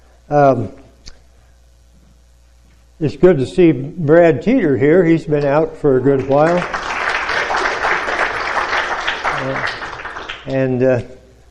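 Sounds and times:
speech: 0.3s - 0.8s, 3.0s - 6.8s, 10.4s - 11.2s
audience applause: 6.1s - 10.6s.

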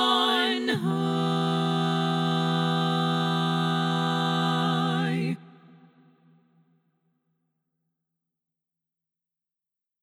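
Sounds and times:
SSAA choir lead voice singing: 0.0s - 5.9s.

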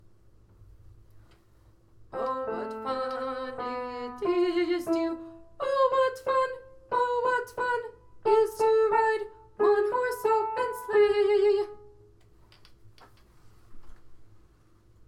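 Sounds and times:
soprano singing: 2.2s - 12.0s.

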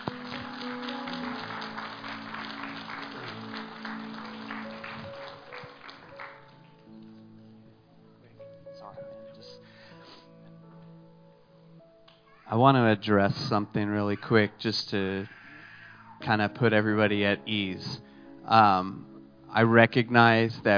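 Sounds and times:
audience applause: 0.0s - 6.9s
sustained keyboard chords: 0.0s - 15.2s, 16.2s - 20.7s
speech: 12.5s - 15.4s, 16.2s - 20.7s.

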